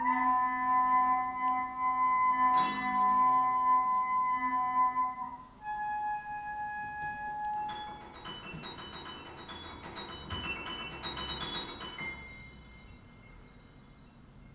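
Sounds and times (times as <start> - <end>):
clarinet: 0.0 - 8.6.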